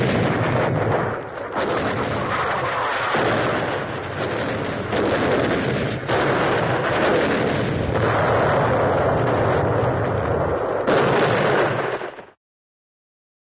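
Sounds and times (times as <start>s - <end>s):
distant cartoon artillery explosions: 0.0s - 12.4s.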